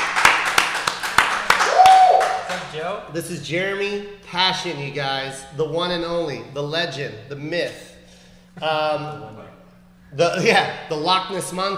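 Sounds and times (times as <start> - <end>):
sharp hand claps: 0.0 - 3.0
soft hiss of noise: 0.0 - 11.7
speech: 2.7 - 7.9, 8.6 - 9.5, 10.1 - 11.7.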